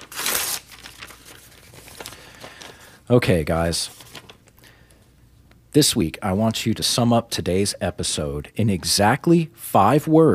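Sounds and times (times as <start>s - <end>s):
paper envelope being ripped open: 0.0s - 2.8s
faint paper rustling: 0.0s - 3.0s, 3.7s - 4.5s
speech: 3.1s - 4.0s, 5.8s - 10.3s.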